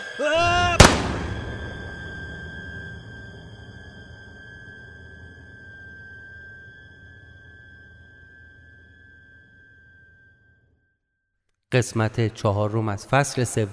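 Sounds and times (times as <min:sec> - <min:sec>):
person yelling: 0:00.0 - 0:00.9
speech: 0:00.2 - 0:00.5, 0:11.7 - 0:13.7
rifle shot: 0:00.7 - 0:02.2
low rumble: 0:00.7 - 0:07.5
high-pitched ringing tone: 0:01.4 - 0:10.6.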